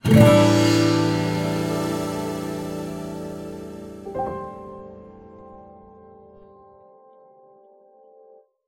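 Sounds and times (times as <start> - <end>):
chord: 0.0 - 6.5.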